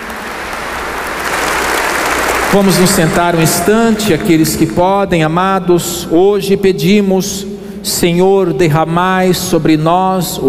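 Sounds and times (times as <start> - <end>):
congregation applauding during a Catholic Mass: 0.0 - 4.7
speech: 2.5 - 10.4.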